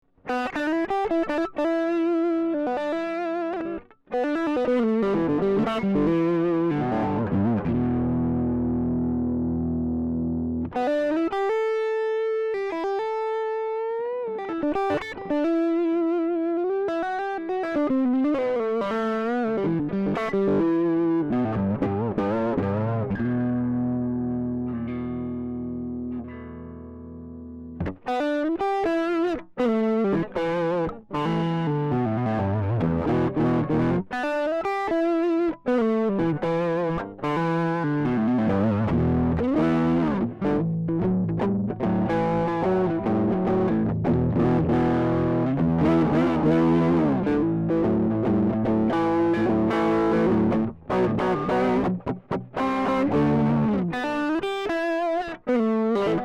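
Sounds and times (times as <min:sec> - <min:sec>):
boogie on a Gibson Firebird V Reissue electric guitar: 0:00.2 - 0:56.2.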